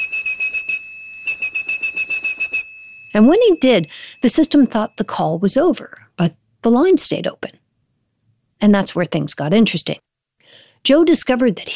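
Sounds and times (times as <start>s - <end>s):
whistled 2600 hertz telephone tone: 0.0s - 5.2s
speech: 3.1s - 7.6s, 8.6s - 11.7s.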